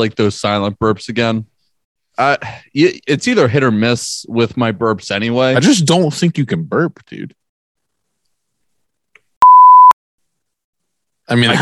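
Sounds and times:
speech: 0.0s - 1.5s, 2.2s - 7.4s, 11.3s - 11.6s
censor beep: 9.4s - 10.0s.

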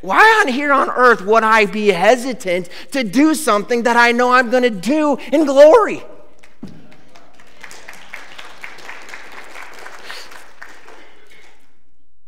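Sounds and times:
speech: 0.0s - 6.1s
audience applause: 6.4s - 11.8s.

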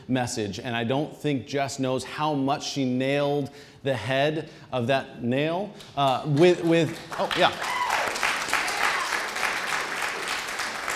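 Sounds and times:
speech: 0.1s - 7.8s
crowd applauding: 6.4s - 10.9s.

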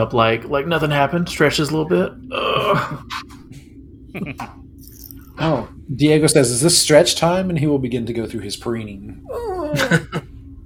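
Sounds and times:
speech: 0.0s - 3.4s, 4.1s - 4.6s, 5.4s - 10.2s
person vocally imitating a big cat's yawn: 2.3s - 3.1s.

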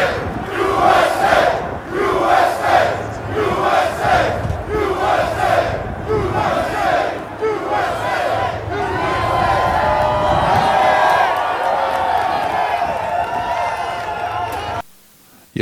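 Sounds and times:
construction workers chanting in New York City: 0.0s - 9.9s
construction workers cheering and whooping in New York City: 7.5s - 14.8s.

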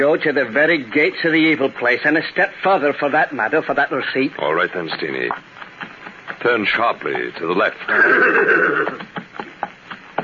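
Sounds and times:
speech: 0.0s - 5.6s, 6.4s - 9.2s
clopping hoofbeats: 3.8s - 10.2s
horse neighing: 7.9s - 9.1s.

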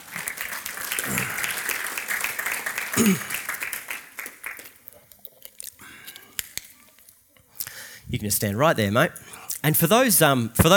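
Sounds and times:
audience applause: 0.0s - 4.7s
speech: 3.0s - 3.4s, 8.2s - 10.7s.

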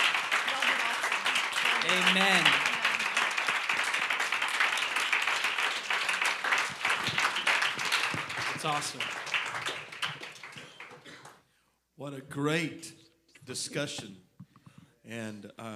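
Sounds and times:
audience hand clapping: 0.0s - 11.5s
speech: 1.8s - 2.6s, 8.6s - 9.2s, 12.0s - 14.3s, 15.1s - 15.7s.

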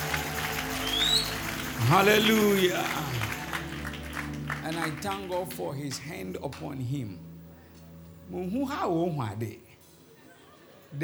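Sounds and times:
audience clapping: 0.0s - 6.8s
speech: 1.8s - 3.2s, 4.7s - 7.3s, 8.3s - 9.6s.

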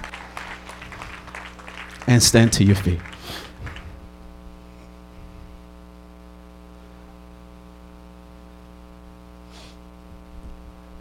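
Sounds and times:
audience clapping hands: 0.0s - 4.3s
speech: 2.0s - 3.5s.

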